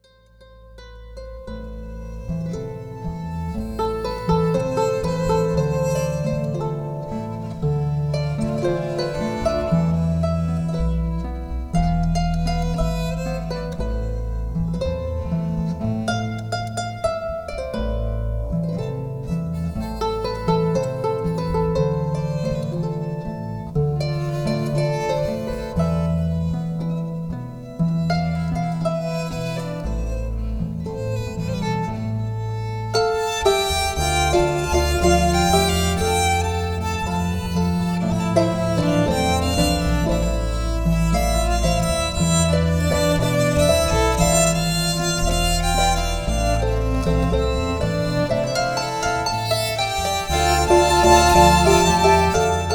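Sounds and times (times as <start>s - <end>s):
habanera music: 0.0s - 52.7s.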